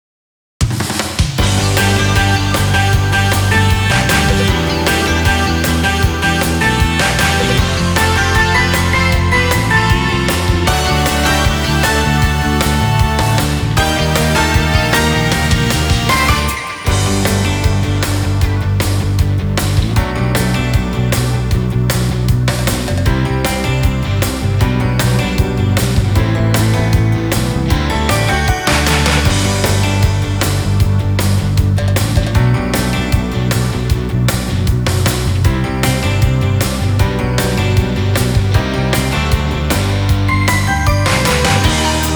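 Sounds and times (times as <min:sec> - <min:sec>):
karaoke backing music: 0:01.4 - 0:42.1.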